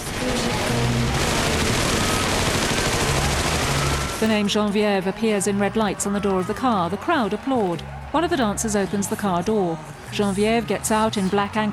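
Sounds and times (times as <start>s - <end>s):
staged machine gun fire: 0.0s - 4.2s
speech: 4.2s - 11.7s.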